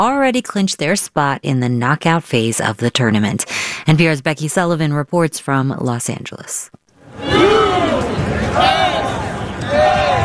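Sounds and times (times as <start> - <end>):
speech: 0.0 - 8.9
rowdy stadium crowd at a World Cup game: 7.1 - 10.2.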